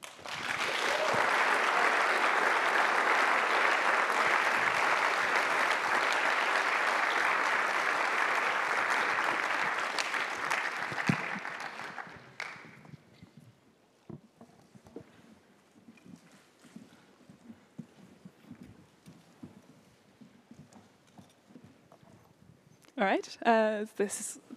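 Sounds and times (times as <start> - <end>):
audience applause: 0.0 - 12.8.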